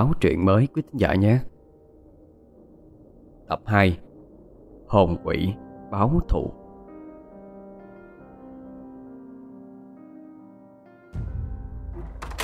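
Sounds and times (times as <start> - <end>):
speech: 0.0 - 1.5, 3.5 - 4.0, 4.9 - 6.6
door banging open: 11.9 - 12.4.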